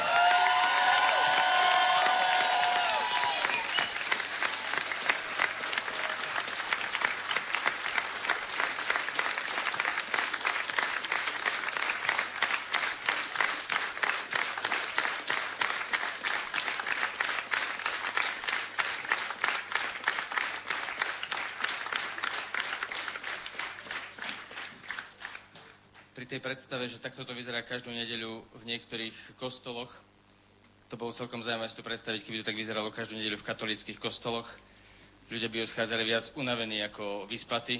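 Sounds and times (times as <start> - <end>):
hall applauding and cheering: 0.0 - 25.7
speech: 26.3 - 30.0, 30.9 - 34.7, 35.3 - 37.7.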